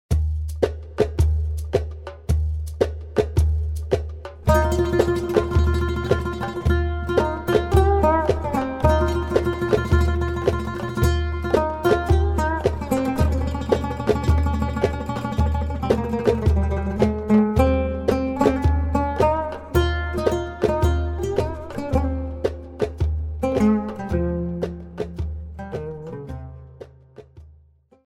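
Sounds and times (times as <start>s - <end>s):
oriental taksim on oud: 0.1s - 28.0s.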